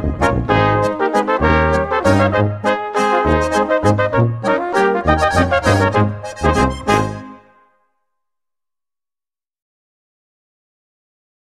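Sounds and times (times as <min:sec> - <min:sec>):
waltz music: 0:00.0 - 0:07.6.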